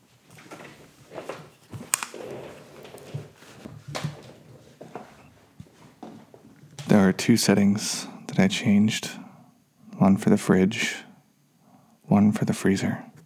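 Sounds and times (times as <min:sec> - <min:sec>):
footsteps walking: 0:00.0 - 0:08.1
speech: 0:07.0 - 0:09.2, 0:10.1 - 0:11.0, 0:12.2 - 0:13.1.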